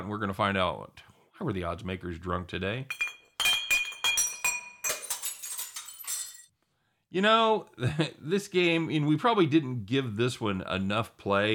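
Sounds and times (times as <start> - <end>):
speech: 0.1 - 3.1, 7.1 - 11.5
glass bottles clinking: 2.9 - 6.5.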